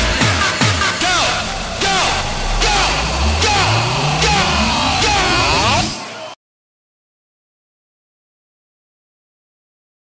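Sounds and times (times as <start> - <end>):
kick bass: 0.0 - 5.8.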